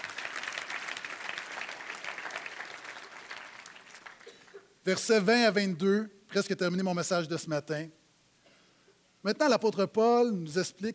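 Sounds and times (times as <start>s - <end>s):
audience applause: 0.0s - 4.5s
speech: 4.8s - 8.0s, 9.2s - 10.9s.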